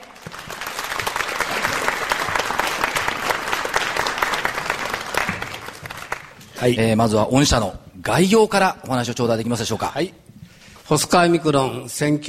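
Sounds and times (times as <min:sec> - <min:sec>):
audience applause welcoming a speaker: 0:00.0 - 0:06.5
speech: 0:06.6 - 0:10.2, 0:10.9 - 0:12.2.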